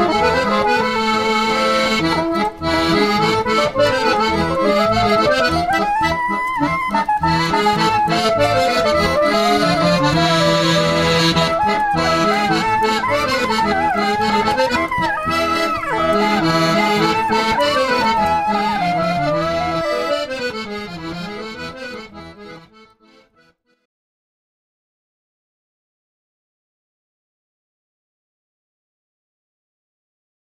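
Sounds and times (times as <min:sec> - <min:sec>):
saxophone playing klezmer freylekh: 0:00.0 - 0:23.5.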